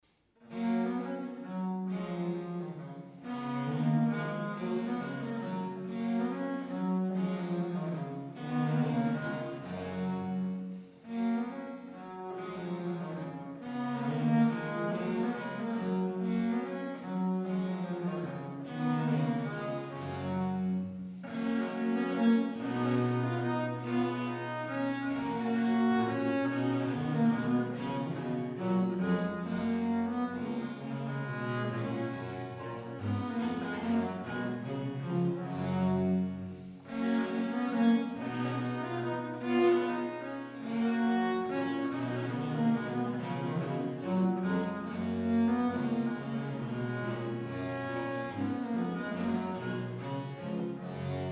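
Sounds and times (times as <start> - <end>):
minuet: 0.4 - 51.2.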